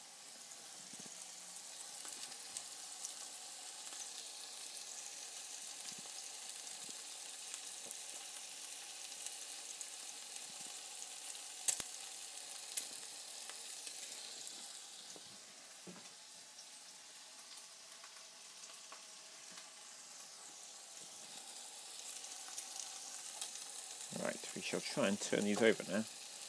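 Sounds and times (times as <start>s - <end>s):
food frying in a pan: 0.0s - 26.4s
speech: 24.6s - 26.2s.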